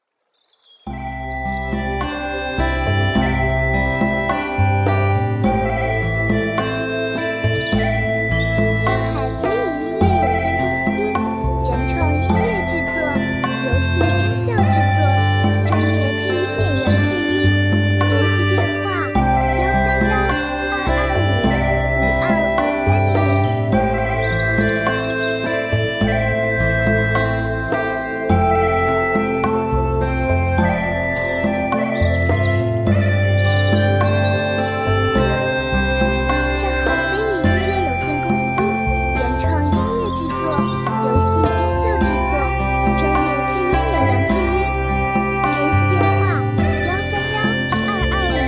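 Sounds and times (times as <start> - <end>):
soothing bright music: 0.9 - 48.4.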